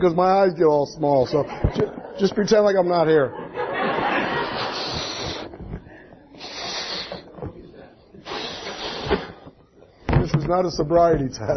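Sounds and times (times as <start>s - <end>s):
speech: 0.0s - 3.4s, 10.5s - 11.5s
laughter: 1.3s - 5.5s
air blown into a balloon: 4.3s - 7.4s, 8.2s - 9.5s
faint breathing: 4.4s - 9.6s.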